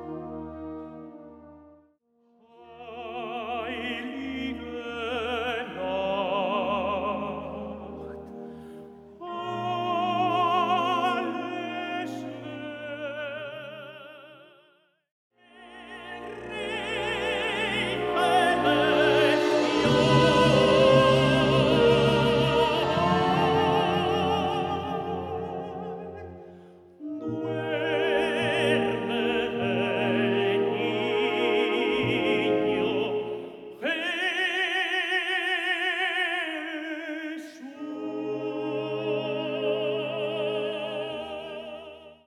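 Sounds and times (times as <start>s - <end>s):
tenor singing a Christmas carol: 2.4s - 14.7s, 15.4s - 42.2s
band playing: 17.6s - 26.1s.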